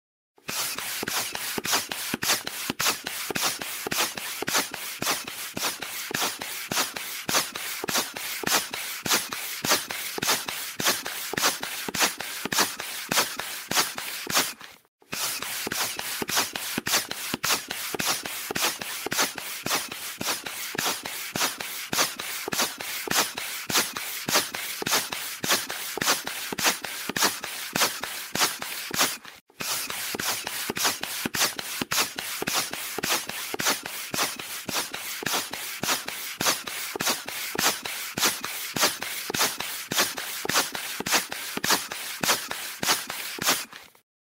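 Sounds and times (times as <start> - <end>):
hand pump: 0.4 - 44.0.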